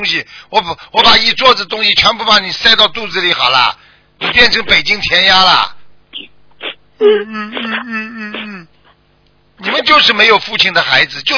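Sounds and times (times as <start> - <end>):
speech: 0.0 - 6.3, 7.0 - 8.4, 9.6 - 11.3
person crying: 6.6 - 8.7.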